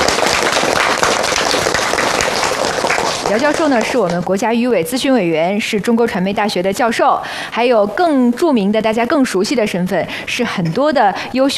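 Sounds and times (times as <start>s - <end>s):
audience applause: 0.0s - 4.3s
speech: 3.3s - 11.5s.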